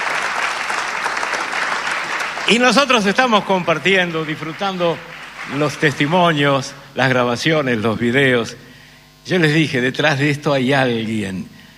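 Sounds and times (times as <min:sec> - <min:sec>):
strong audience applause: 0:00.0 - 0:06.6
speech: 0:02.5 - 0:11.5.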